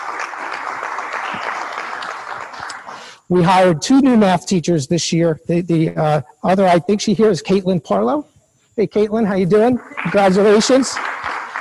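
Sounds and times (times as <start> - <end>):
audience clapping: 0.0 - 3.3, 9.6 - 11.5
speech: 3.3 - 11.1.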